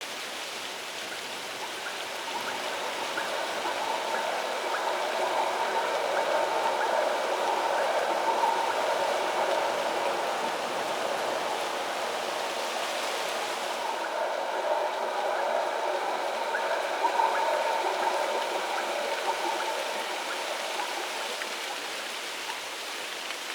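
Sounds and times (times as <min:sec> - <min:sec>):
daytime ambience loop in glades: 0:00.2 - 0:23.4.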